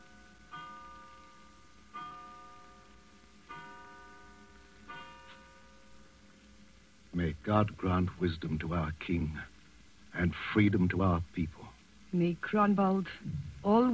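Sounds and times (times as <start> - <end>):
clock chiming the hour with bell strikes: 0.0 - 6.0
speech: 7.2 - 9.5, 10.2 - 13.9.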